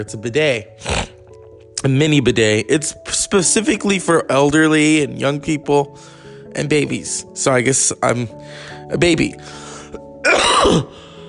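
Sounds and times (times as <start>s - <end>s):
speech: 0.0s - 0.9s, 1.8s - 9.6s, 10.2s - 11.0s
cough: 10.2s - 10.9s.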